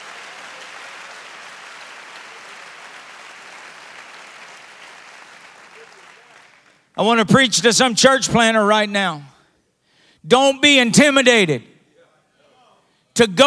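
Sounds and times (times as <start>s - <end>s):
audience clapping hands in church: 0.0s - 7.0s
speech: 7.0s - 9.3s, 10.2s - 11.7s, 13.2s - 13.4s.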